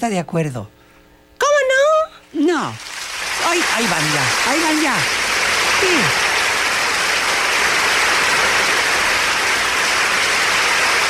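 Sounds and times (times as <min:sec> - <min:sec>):
speech: 0:00.0 - 0:00.8, 0:02.4 - 0:05.2, 0:05.8 - 0:06.2
audience applause: 0:02.7 - 0:11.0.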